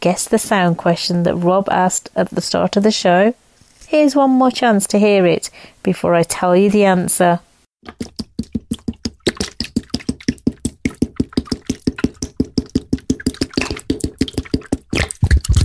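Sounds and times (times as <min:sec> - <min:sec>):
speech: 0:00.0 - 0:08.2
water gurgling out of a bottle: 0:07.8 - 0:15.6.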